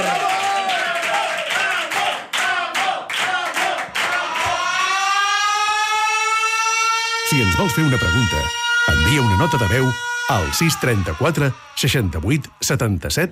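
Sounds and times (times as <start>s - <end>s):
loud applause: 0.0s - 6.2s, 7.0s - 12.8s
wailing siren-like tone: 4.3s - 13.1s
speech: 7.3s - 13.3s.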